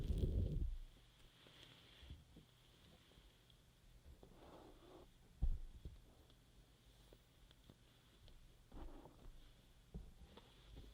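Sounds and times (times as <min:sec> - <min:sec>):
faint steady hum: 0:00.0 - 0:10.9
soft rubbing and stroking from an ear massage: 0:00.0 - 0:10.9
heavy thump: 0:05.4 - 0:05.8.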